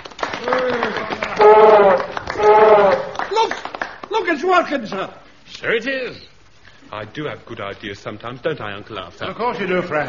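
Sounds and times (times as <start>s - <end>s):
group of men applauding: 0.0s - 5.0s
speech: 3.4s - 6.3s, 6.9s - 10.0s.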